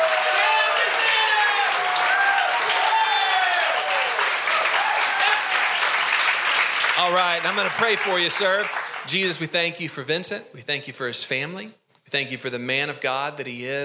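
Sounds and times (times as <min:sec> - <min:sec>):
audience clapping: 0:00.0 - 0:09.4
speech: 0:07.0 - 0:13.8.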